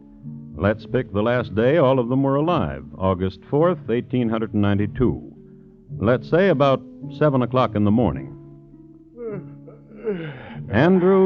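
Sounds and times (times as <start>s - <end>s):
speech: 0.6s - 5.3s, 5.9s - 8.3s, 10.1s - 11.2s
man yawning: 9.1s - 11.2s.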